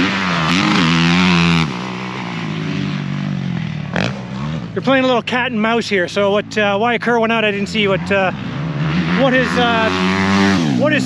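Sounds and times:
450 race motorcycle riding past: 0.0s - 4.8s, 7.6s - 11.0s
speech: 4.8s - 8.5s, 9.2s - 11.0s.

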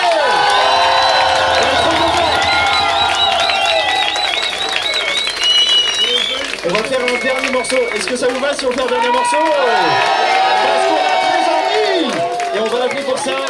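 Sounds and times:
high whoops and shrill whistles: 0.0s - 10.0s
audience applause and cheering: 0.0s - 13.4s
speech: 7.6s - 11.1s, 12.6s - 13.4s.

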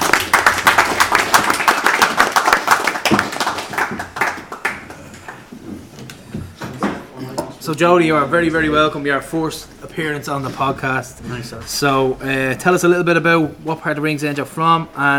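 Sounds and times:
audience applause: 0.0s - 5.5s
speech: 7.7s - 15.1s.

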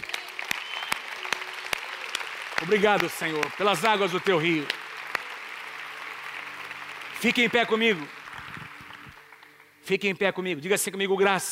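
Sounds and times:
audience applause: 0.0s - 9.8s
speech: 2.6s - 4.8s, 7.2s - 8.2s, 9.9s - 11.5s.

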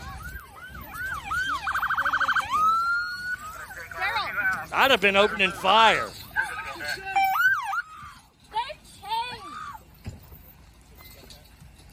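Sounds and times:
police car siren as a cop vehicle drives through a roadblock: 0.0s - 8.2s
speech: 4.7s - 6.2s.

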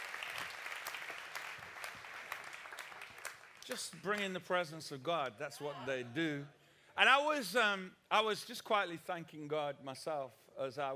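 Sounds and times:
audience clapping: 0.0s - 4.6s
speech: 3.7s - 10.9s.

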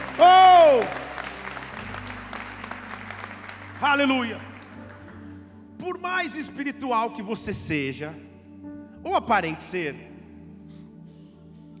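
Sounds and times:
audience clapping: 0.0s - 5.5s
speech: 3.9s - 4.5s, 5.9s - 8.3s, 9.0s - 10.1s.

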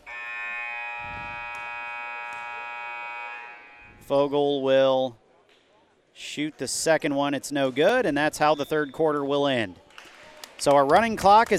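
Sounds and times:
basketball end-of-quarter buzzer: 0.0s - 4.3s
speech: 4.1s - 5.2s, 6.2s - 9.8s, 10.6s - 11.5s.

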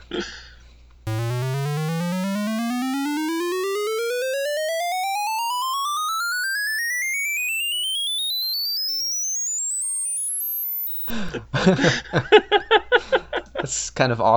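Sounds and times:
speech: 0.1s - 0.4s, 11.3s - 12.5s, 13.6s - 14.3s
one square channel sweeping from lowest to highest pitch: 1.1s - 11.1s.

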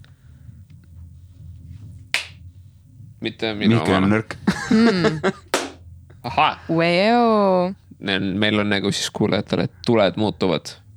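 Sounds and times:
low rumble: 0.0s - 10.9s
hand clap to switch light colour: 2.2s - 2.4s, 5.0s - 5.8s
speech: 3.2s - 5.5s, 6.2s - 10.8s
laughter: 3.3s - 5.7s, 6.3s - 7.0s, 8.5s - 10.1s.

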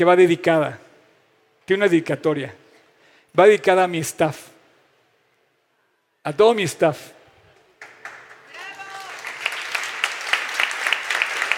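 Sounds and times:
speech: 0.0s - 0.8s, 1.7s - 2.6s, 3.4s - 4.5s, 6.2s - 7.2s
audience applause: 7.8s - 11.5s.

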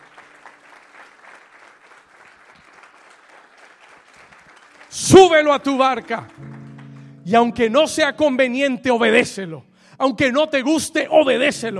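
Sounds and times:
audience applauding: 0.0s - 7.6s
speech: 4.9s - 6.5s, 7.3s - 11.7s.

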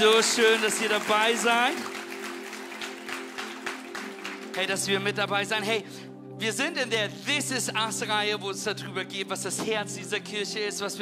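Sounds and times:
speech: 0.0s - 2.0s, 4.6s - 11.0s
audience applause: 0.0s - 4.7s.

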